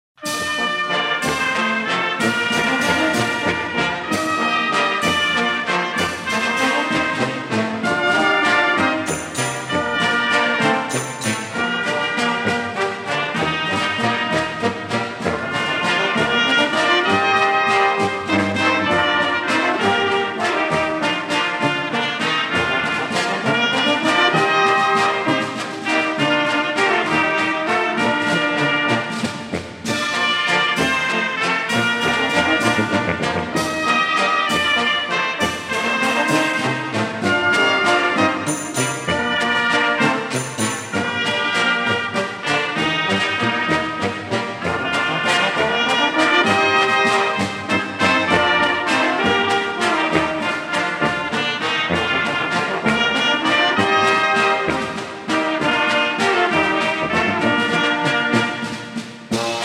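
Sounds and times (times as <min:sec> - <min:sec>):
waltz music: 0:00.2 - 0:59.6.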